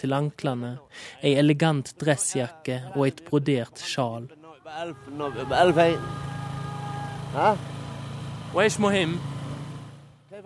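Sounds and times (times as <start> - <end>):
speech: 0.0 - 6.3, 7.3 - 7.7, 8.5 - 9.3
car engine driving through Sanaa, Yemen: 4.8 - 10.3.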